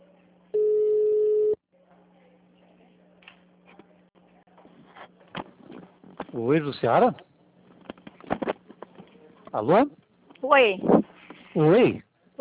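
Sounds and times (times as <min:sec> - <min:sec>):
quiet humming phone line: 0:00.5 - 0:01.6
telephone ringback tone: 0:00.6 - 0:01.6
speech: 0:06.4 - 0:07.3, 0:09.6 - 0:11.0, 0:11.6 - 0:12.3.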